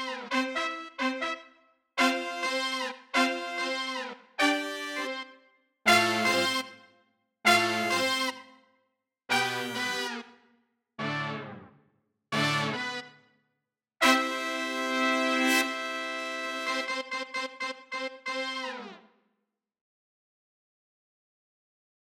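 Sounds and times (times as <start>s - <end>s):
hot brass: 0.0s - 5.3s, 5.9s - 6.8s, 7.5s - 8.5s, 9.3s - 10.3s, 11.0s - 11.7s, 12.4s - 13.2s, 14.0s - 19.0s.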